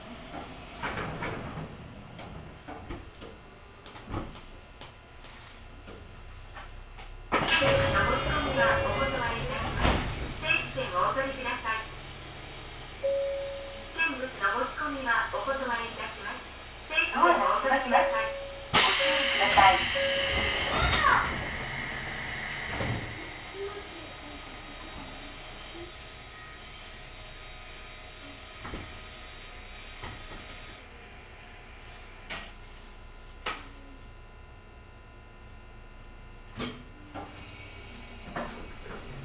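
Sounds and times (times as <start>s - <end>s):
Ohmi Railway train running, Yokaichi to Kibukawa: 0.0s - 33.3s, 36.6s - 39.2s
burst of voices: 7.6s - 12.0s, 13.9s - 21.6s, 22.7s - 26.8s.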